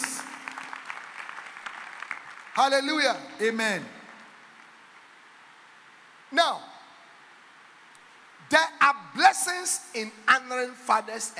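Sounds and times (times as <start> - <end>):
audience clapping hands: 0.0 - 5.1
speech: 2.6 - 4.0, 6.3 - 6.7, 9.6 - 11.3.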